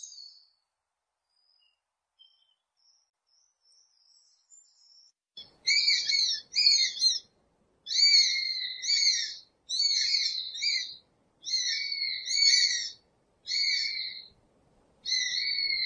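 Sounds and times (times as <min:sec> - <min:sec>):
hawk screams and wavering whistles: 0:05.7 - 0:07.3, 0:07.9 - 0:14.3, 0:15.0 - 0:15.8.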